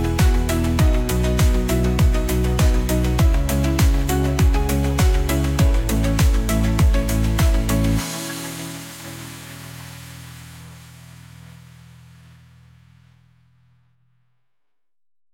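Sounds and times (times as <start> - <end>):
triumphant techno music: 0.0 - 11.8.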